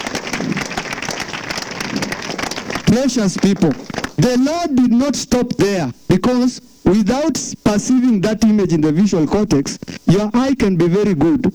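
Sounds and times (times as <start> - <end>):
congregation clapping for Jesus during a church service: 0.0 - 4.5
speech: 2.9 - 11.5.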